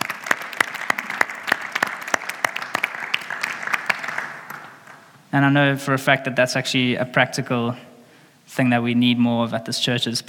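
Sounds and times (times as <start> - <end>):
audience applause: 0.0 - 5.0
speech: 5.3 - 7.9, 8.6 - 10.2.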